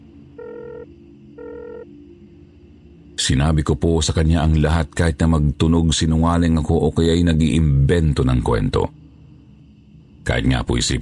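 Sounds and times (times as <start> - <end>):
low hum: 0.0 - 11.0
telephone ringback tone as a call is placed: 0.4 - 1.9
speech: 3.2 - 9.0, 10.3 - 11.0.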